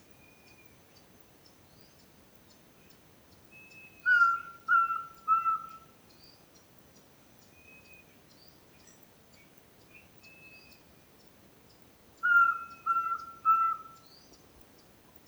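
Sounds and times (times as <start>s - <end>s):
Glaucidium minutissimum pygmy owl: 4.1s - 5.9s, 12.2s - 14.1s.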